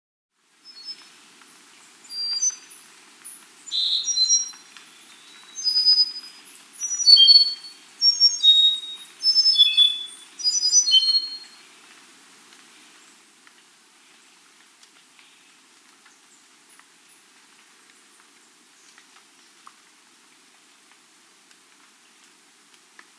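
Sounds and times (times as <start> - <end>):
Andean solitaire song of flute-like whistles: 5.5 - 11.5.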